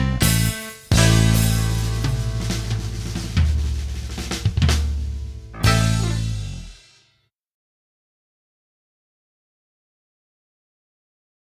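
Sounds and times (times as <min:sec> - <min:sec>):
guitar backing track: 0:00.0 - 0:06.8.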